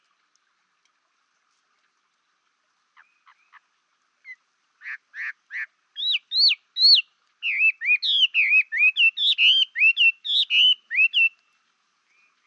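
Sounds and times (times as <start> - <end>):
Chinese Hwamei singing: 5.5 - 12.4.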